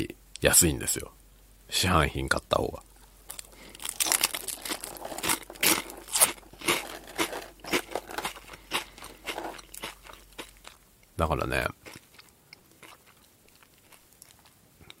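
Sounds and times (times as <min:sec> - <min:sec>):
speech: 0:00.4 - 0:02.9, 0:11.2 - 0:11.8
crunchy potato stick snacks being chewed: 0:03.3 - 0:10.8, 0:11.7 - 0:14.9.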